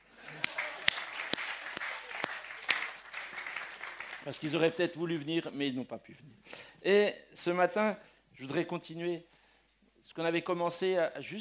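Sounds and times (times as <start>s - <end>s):
audience applause: 0.0s - 4.7s
speech: 4.2s - 9.4s, 10.0s - 11.3s.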